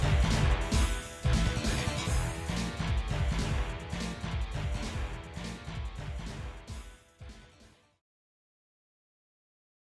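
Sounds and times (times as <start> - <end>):
scrapped beat: 0.0 - 7.6.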